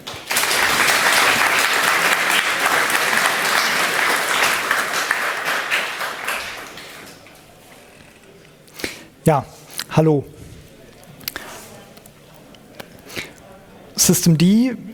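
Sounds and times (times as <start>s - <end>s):
audience applause: 0.0s - 7.6s
speech: 9.3s - 10.4s, 14.1s - 14.9s.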